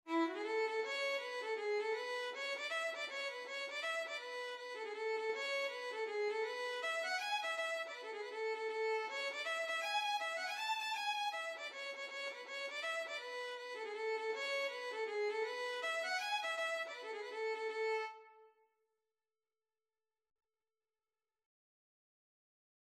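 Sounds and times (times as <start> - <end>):
violin: 0.0 - 18.6.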